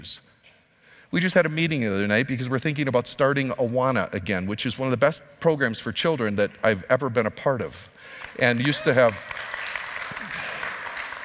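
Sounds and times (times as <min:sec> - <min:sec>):
speech: 0:00.0 - 0:00.3, 0:01.1 - 0:09.5
audience clapping: 0:08.1 - 0:11.2.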